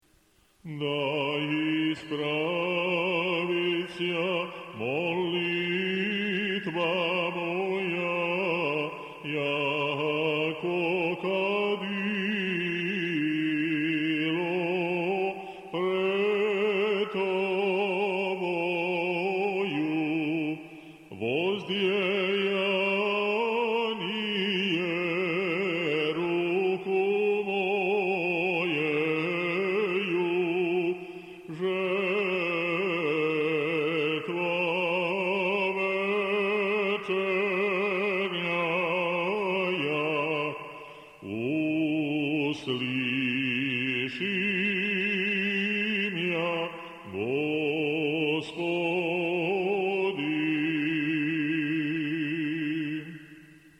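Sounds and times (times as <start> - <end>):
Osmoglasnik liturgical chant in tone seven: 0.6 - 53.7.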